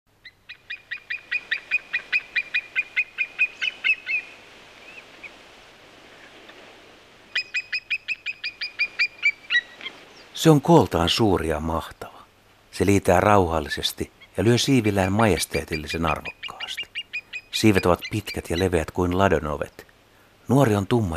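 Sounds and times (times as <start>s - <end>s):
white-tailed eagle yelping calls: 0.1s - 5.4s, 7.3s - 10.4s, 14.1s - 19.2s
speech: 10.4s - 12.0s, 12.8s - 16.4s, 17.6s - 19.8s, 20.5s - 21.1s.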